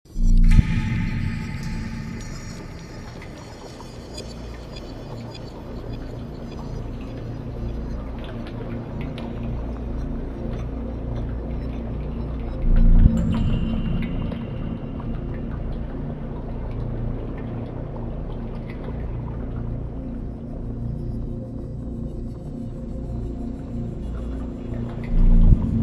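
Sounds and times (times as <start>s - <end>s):
basement ambience: 0.1s - 25.8s.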